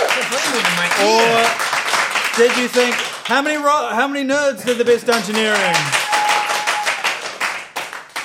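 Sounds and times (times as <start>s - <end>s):
crowd applause: 0.0s - 3.7s, 4.6s - 8.2s
speech: 0.8s - 1.6s, 2.4s - 6.0s.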